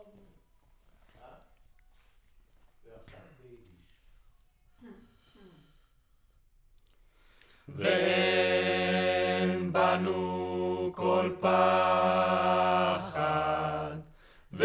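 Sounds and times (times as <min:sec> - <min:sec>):
choir singing: 0:07.7 - 0:14.6.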